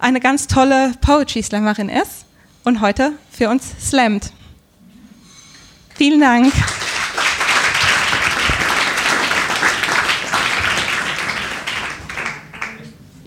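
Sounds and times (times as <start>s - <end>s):
speech: 0.0s - 4.4s, 6.0s - 6.8s
audience applause: 6.4s - 13.0s.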